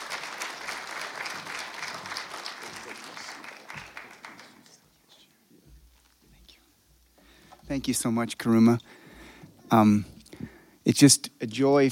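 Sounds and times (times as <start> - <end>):
audience applause welcoming speaker: 0.0 - 4.9
speech: 7.7 - 9.0, 9.7 - 10.1, 10.9 - 11.9.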